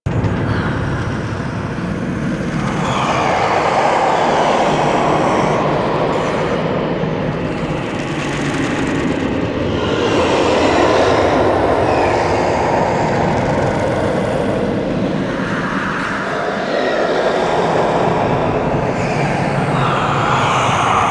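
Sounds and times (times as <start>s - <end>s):
tomb interior ambience: 0.0s - 21.0s.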